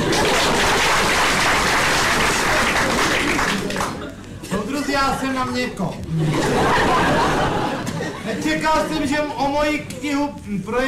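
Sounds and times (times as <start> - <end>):
audience applause: 0.0 - 4.1
laughter: 0.0 - 10.0
speech: 5.0 - 7.6, 8.4 - 10.8.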